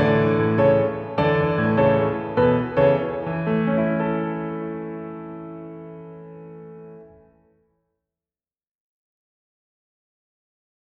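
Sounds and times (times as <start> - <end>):
piano: 0.0 - 7.8.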